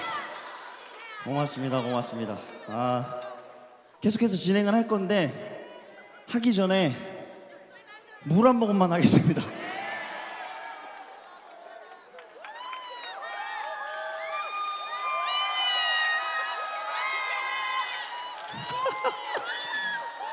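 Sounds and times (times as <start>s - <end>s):
audience applause and cheering: 0.0s - 3.9s, 9.4s - 20.3s
speech: 1.2s - 3.2s, 4.0s - 5.6s, 6.3s - 7.1s, 8.2s - 9.6s.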